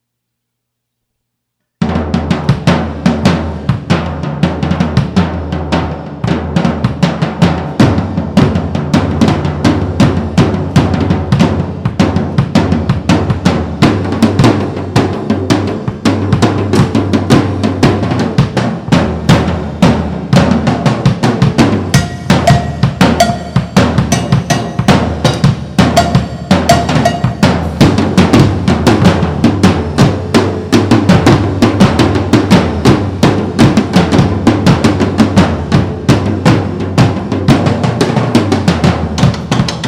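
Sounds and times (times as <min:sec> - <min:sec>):
drum solo: 0:01.8 - 0:39.8.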